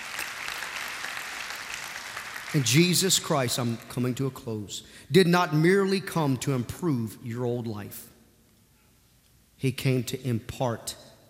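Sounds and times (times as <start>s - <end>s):
audience applauding: 0.0s - 3.8s
speech: 2.5s - 8.1s, 9.6s - 11.0s.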